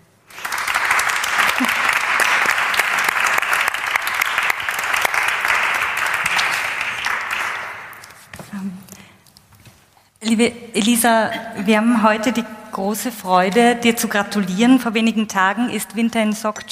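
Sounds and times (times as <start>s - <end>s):
crowd applauding a guest on stage: 0.2s - 8.2s
speech: 10.3s - 16.7s.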